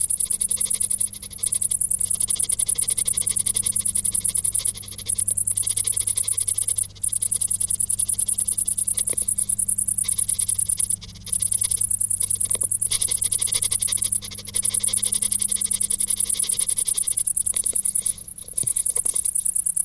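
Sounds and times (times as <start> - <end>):
crickets trilling in a fast high chorus: 0.0 - 19.8
steady low hum: 0.0 - 19.8.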